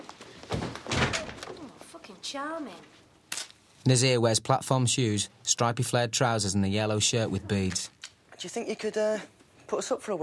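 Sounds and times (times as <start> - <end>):
door slamming shut: 0.5 - 1.4
speech: 2.2 - 3.0, 3.8 - 10.2.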